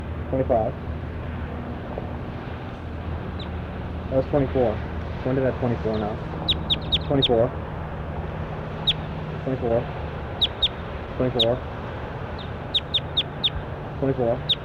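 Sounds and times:
steady low hum: 0.0s - 14.6s
speech: 0.3s - 0.9s, 4.1s - 6.3s, 7.1s - 7.6s, 9.4s - 10.0s, 11.2s - 11.7s, 14.0s - 14.6s
lower nasal clucking bird calls: 3.3s - 3.6s, 5.9s - 7.5s, 8.7s - 9.2s, 10.3s - 11.6s, 12.3s - 14.6s
short sharp high bird chirps: 6.4s - 7.4s, 8.8s - 9.1s, 10.4s - 10.8s, 12.4s - 13.6s, 14.4s - 14.6s.

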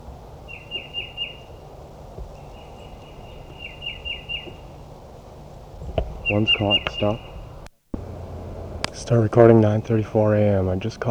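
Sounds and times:
thin steady whistle-like tone: 0.0s - 8.6s
low rumbling background: 0.0s - 11.0s
wild birds chirping: 0.0s - 11.0s
speech: 6.3s - 7.3s, 9.1s - 11.0s.

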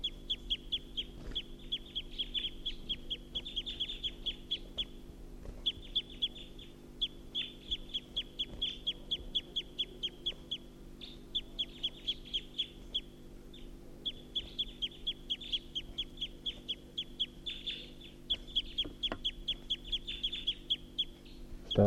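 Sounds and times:
wild bird calling from a tall pine: 0.0s - 21.8s.

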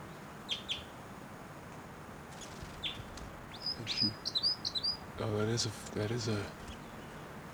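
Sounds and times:
wild bird flight calls: 2.4s - 7.2s
speech: 4.0s - 4.4s, 5.2s - 6.6s.

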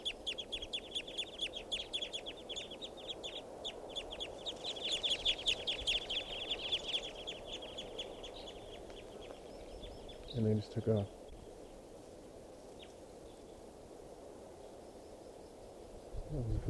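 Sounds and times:
flock of wild birds calling: 0.0s - 11.8s
speech: 10.4s - 11.2s, 16.3s - 16.6s.

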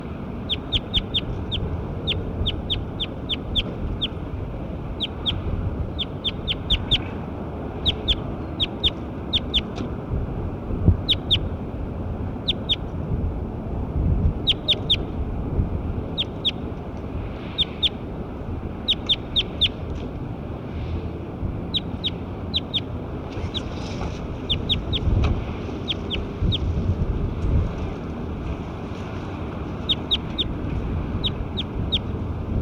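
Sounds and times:
steady noisy rumble: 0.0s - 32.6s
bird chirping: 0.5s - 4.2s, 5.0s - 7.1s, 7.8s - 9.8s, 11.0s - 11.5s, 12.4s - 12.8s, 14.4s - 15.1s, 16.2s - 16.6s, 17.5s - 18.0s, 18.8s - 19.8s, 21.7s - 25.1s, 25.8s - 26.7s, 29.8s - 30.6s, 31.2s - 32.1s.

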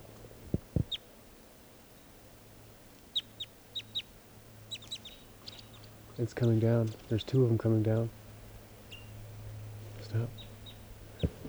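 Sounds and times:
wild bird calling from trees: 3.1s - 11.4s
speech: 6.2s - 8.2s.

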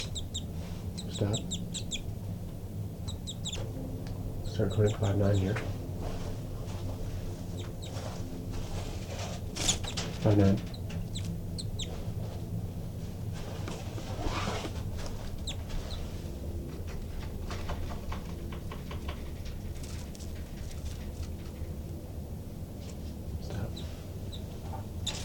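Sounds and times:
disturbed birds in a nest: 0.0s - 13.6s, 14.6s - 25.2s
speech: 1.2s - 1.7s, 4.6s - 5.8s, 10.2s - 10.7s.

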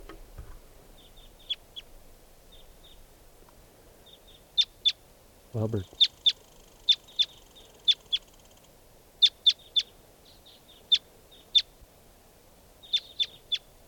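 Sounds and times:
wild birds chirping: 0.0s - 11.8s, 12.8s - 13.8s
speech: 5.5s - 6.0s.

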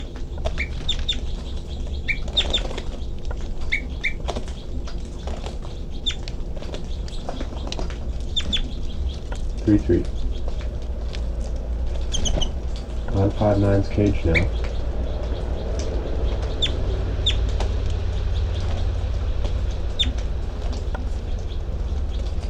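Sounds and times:
captive bird giving flight calls: 0.0s - 22.4s
steady low rumble: 0.0s - 22.4s
speech: 9.7s - 10.2s, 13.2s - 14.6s.

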